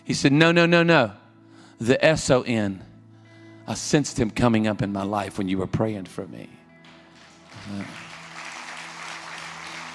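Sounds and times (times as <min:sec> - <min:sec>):
speech: 0:00.1 - 0:01.2, 0:01.8 - 0:02.9, 0:03.7 - 0:06.6, 0:07.6 - 0:08.0
audience clapping: 0:06.8 - 0:09.9.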